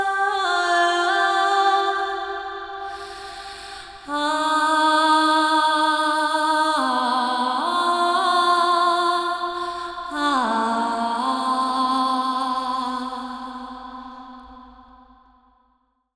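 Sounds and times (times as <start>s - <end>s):
panned ah vocals with reverb: 0.0s - 15.0s.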